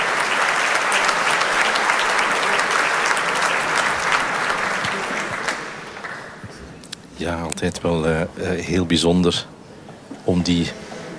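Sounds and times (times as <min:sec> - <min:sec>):
concert audience and orchestra applause in a hall: 0:00.0 - 0:06.4
speech: 0:07.2 - 0:09.5, 0:10.3 - 0:10.9.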